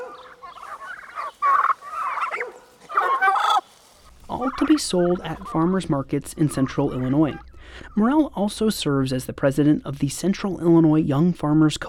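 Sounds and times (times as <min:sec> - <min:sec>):
turkeys gobbling: 0:00.0 - 0:08.3
speech: 0:04.4 - 0:11.8.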